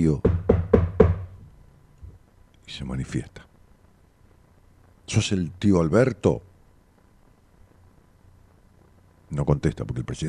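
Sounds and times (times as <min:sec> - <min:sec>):
speech: 0:00.0 - 0:00.3, 0:02.7 - 0:03.5, 0:05.1 - 0:06.5, 0:09.3 - 0:10.2
knocking: 0:00.2 - 0:01.5.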